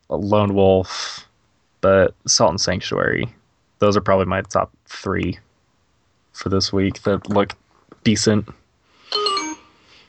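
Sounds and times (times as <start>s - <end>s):
speech: 0.1s - 1.2s, 1.8s - 5.5s, 6.4s - 9.3s
phone app notification alert chime: 9.1s - 9.7s.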